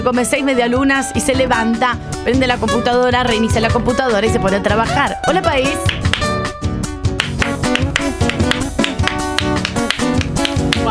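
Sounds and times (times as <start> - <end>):
speech: 0.0 - 6.0
uncoordinated scattered clapping: 5.4 - 10.8.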